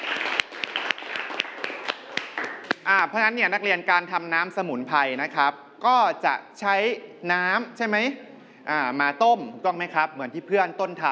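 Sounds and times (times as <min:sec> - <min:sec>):
students in a classroom clapping for a classmate: 0:00.0 - 0:03.1
speech: 0:02.9 - 0:11.1.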